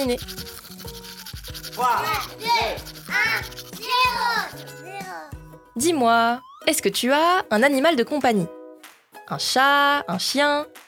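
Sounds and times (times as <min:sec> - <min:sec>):
speech: 0:00.0 - 0:01.0, 0:01.8 - 0:08.6, 0:09.3 - 0:10.8
brushing teeth with a toothbrush: 0:00.0 - 0:05.3.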